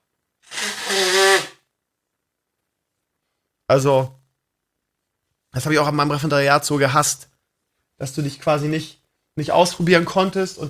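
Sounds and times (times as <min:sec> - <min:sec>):
person blowing nose: 0:00.4 - 0:01.6
speech: 0:03.7 - 0:04.2, 0:05.5 - 0:07.3, 0:08.0 - 0:10.6.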